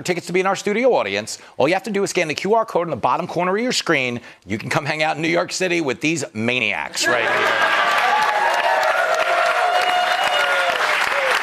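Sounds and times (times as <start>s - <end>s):
speech: 0.0s - 8.0s
studio audience applause: 7.0s - 11.4s
audience whoops and shouts: 7.3s - 11.4s.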